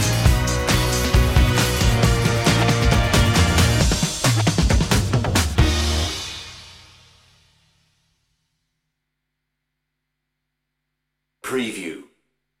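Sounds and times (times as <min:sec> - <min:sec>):
funk music without horn or guitar: 0:00.0 - 0:06.8.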